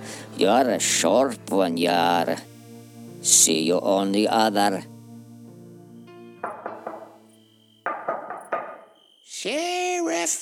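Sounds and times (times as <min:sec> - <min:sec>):
speech: 0:00.4 - 0:02.5, 0:03.2 - 0:04.9
metal device banging on car window: 0:06.4 - 0:07.2, 0:07.9 - 0:08.9.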